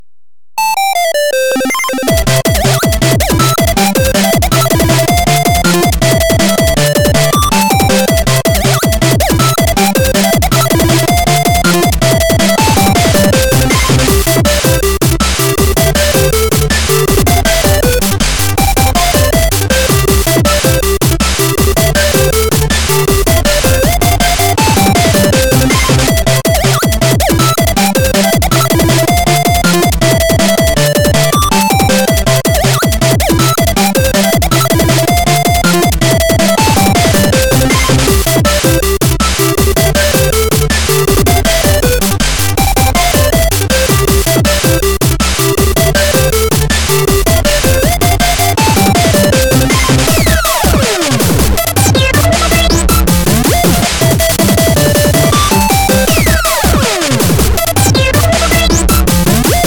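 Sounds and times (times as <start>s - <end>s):
chiptune music: 0.6s - 59.6s.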